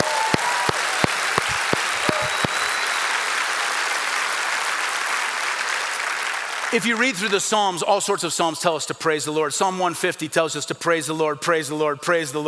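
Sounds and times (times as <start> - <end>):
audience praise clap: 0.0 - 7.8
speech: 6.7 - 12.4.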